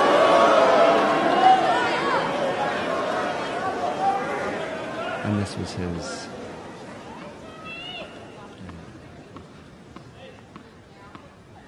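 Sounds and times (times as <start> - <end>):
tennis crowd booing: 0.0 - 5.4
speech: 5.3 - 6.3.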